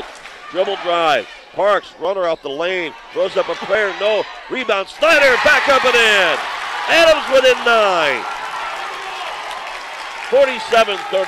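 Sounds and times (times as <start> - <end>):
speech: 0.5 - 8.3, 10.3 - 11.2
basketball fans cheering and clapping in arena: 5.0 - 11.2.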